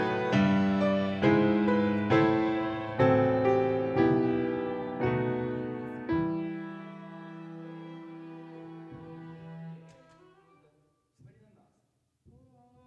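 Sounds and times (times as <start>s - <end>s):
piano: 0.0s - 9.7s.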